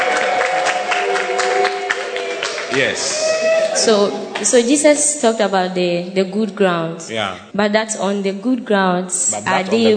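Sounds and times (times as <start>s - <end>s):
audience clapping: 0.0s - 4.6s
speech: 2.8s - 9.9s.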